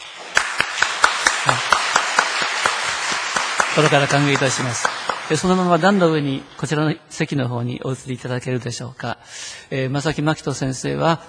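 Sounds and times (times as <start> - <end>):
audience clapping in unison for a guest pastor at a church gathering: 0.0 - 6.7
speech: 3.8 - 11.2.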